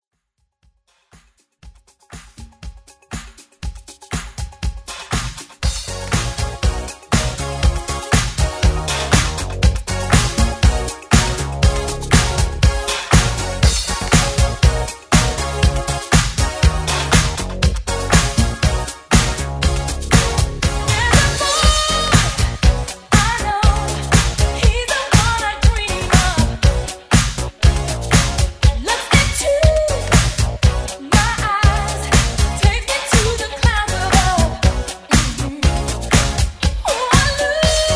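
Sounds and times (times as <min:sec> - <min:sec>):
80s dance music: 0:01.1 - 0:37.9.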